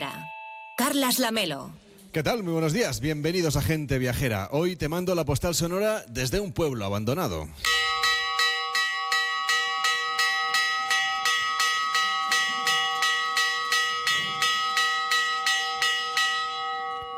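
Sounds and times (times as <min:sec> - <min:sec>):
speech: 0:00.9 - 0:07.8
church bell ringing for gate closing: 0:07.6 - 0:17.1.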